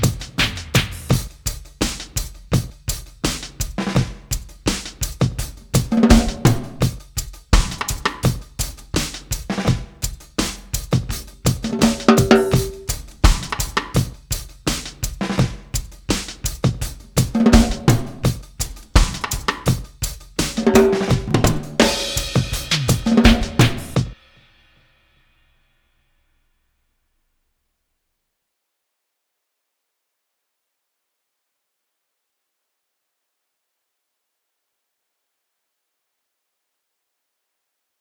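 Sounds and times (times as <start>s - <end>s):
drums: 0.0s - 25.7s.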